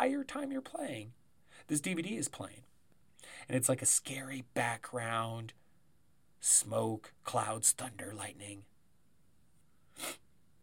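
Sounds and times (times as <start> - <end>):
speech: 0.0 - 5.6, 6.4 - 8.7
faint noise: 0.0 - 10.6
sneeze: 10.0 - 10.2.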